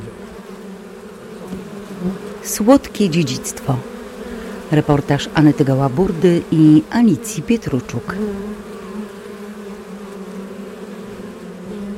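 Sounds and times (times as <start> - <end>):
bees buzzing: 0.0 - 11.9
speech: 2.0 - 3.9, 4.7 - 8.7.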